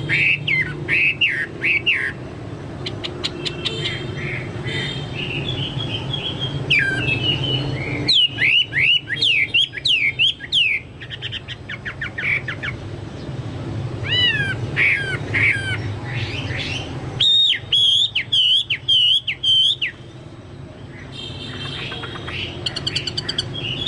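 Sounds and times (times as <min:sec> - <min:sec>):
Chinese hwamei whistled song: 0:00.0 - 0:02.2, 0:02.8 - 0:12.8, 0:14.0 - 0:20.2, 0:20.9 - 0:23.8.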